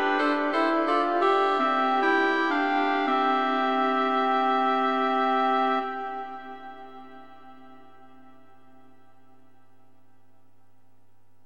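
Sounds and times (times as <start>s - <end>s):
canon for flute, oboe and clarinet: 0.0s - 8.3s.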